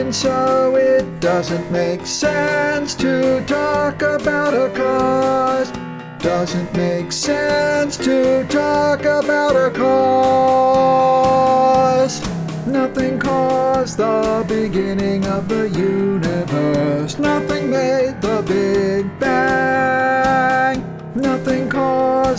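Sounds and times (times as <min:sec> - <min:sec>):
tenor bass: 0:00.0 - 0:22.3.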